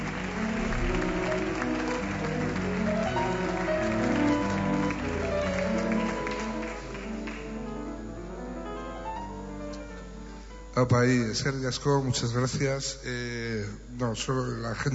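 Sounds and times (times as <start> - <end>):
tonal sound: 0.0 - 3.8
crowd murmur: 0.0 - 3.9
audience applause: 0.0 - 7.8
speech: 10.8 - 14.9.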